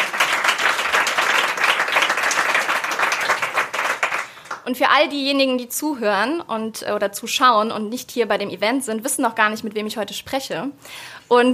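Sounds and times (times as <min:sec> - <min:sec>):
audience applause at live event: 0:00.0 - 0:04.6
speech: 0:04.7 - 0:11.5.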